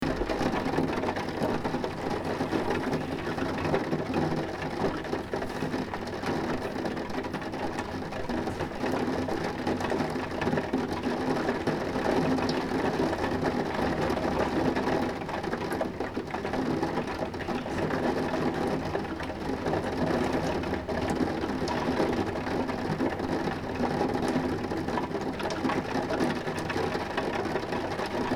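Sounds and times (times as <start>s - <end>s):
rain on the window: 0.0s - 28.3s.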